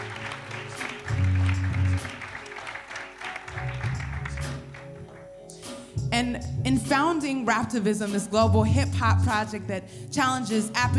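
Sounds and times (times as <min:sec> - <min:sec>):
audience applause: 0:00.0 - 0:05.3
speech: 0:06.2 - 0:10.9.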